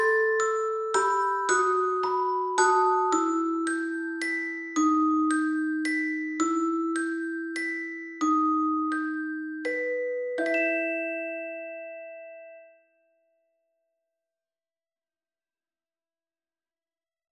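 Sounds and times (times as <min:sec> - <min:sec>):
celesta accompaniment: 0:00.0 - 0:13.0.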